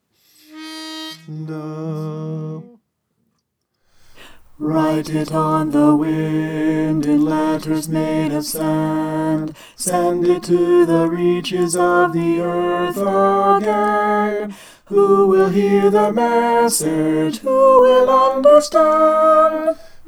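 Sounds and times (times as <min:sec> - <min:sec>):
soprano singing: 0:04.0 - 0:20.0.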